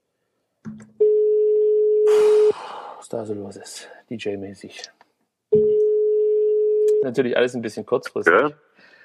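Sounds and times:
telephone ringing tone on a call: 0:01.0 - 0:02.1, 0:05.6 - 0:07.1
speech: 0:03.1 - 0:05.0, 0:07.0 - 0:08.6.

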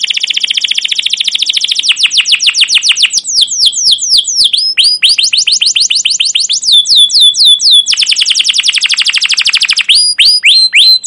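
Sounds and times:
caged domestic canary singing rolling trills: 0:00.0 - 0:11.0.

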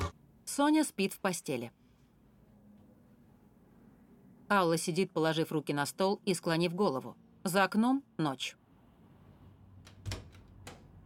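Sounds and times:
speech: 0:00.6 - 0:01.8, 0:04.5 - 0:08.6
front door closing: 0:09.9 - 0:11.0.

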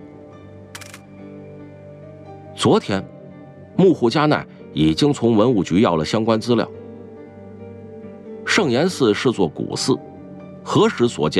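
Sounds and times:
camera shutter taking a photo of an old temple's gate: 0:00.8 - 0:01.0
speech: 0:02.6 - 0:03.1, 0:03.8 - 0:06.8, 0:08.6 - 0:11.3.

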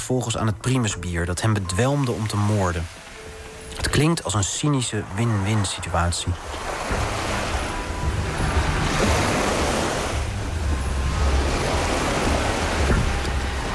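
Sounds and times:
speech: 0:00.1 - 0:03.1, 0:03.9 - 0:07.1
Lake Kivu waves breaking on a small beach in Gisenyi: 0:01.3 - 0:13.7.

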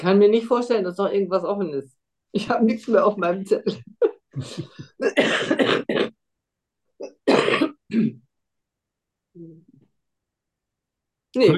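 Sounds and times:
speech: 0:00.0 - 0:06.1, 0:07.9 - 0:08.2, 0:11.4 - 0:11.5
patient coughing: 0:03.5 - 0:06.2, 0:07.0 - 0:08.2.

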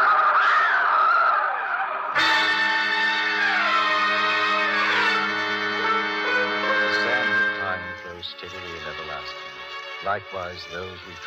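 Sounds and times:
truck skidding: 0:00.0 - 0:08.3
speech: 0:10.2 - 0:11.2.

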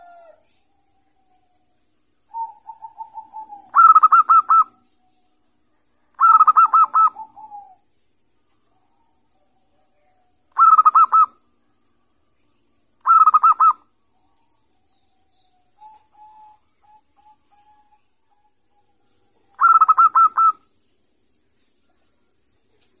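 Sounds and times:
zebra dove singing: 0:00.0 - 0:00.7, 0:02.3 - 0:04.9, 0:06.1 - 0:07.9, 0:09.9 - 0:11.5, 0:13.0 - 0:13.9, 0:15.7 - 0:18.6, 0:19.3 - 0:20.7.

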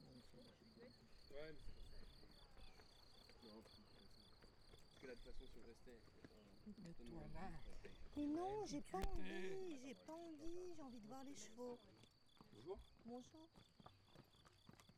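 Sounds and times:
crickets chirping near a meadow in Chindrieux France: 0:00.0 - 0:14.9.

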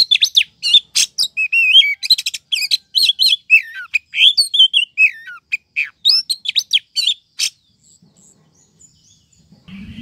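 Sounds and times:
bird chirping and twittering: 0:00.0 - 0:09.9.

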